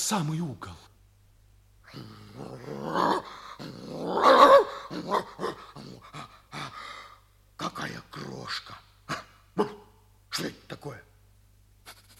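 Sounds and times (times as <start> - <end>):
speech: 0.1 - 0.8, 1.9 - 3.0
dog growling: 1.9 - 6.8.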